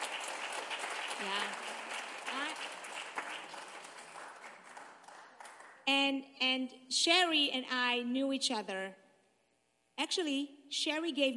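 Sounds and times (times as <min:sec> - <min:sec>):
audience clapping: 0:00.0 - 0:05.9
speech: 0:01.2 - 0:01.7, 0:05.9 - 0:09.0, 0:10.0 - 0:11.3.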